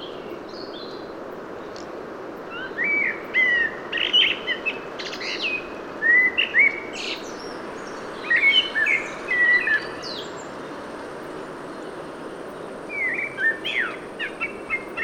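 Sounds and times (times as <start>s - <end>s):
common blackbird Turdus merula singing: 2.6s - 10.4s, 12.9s - 15.0s.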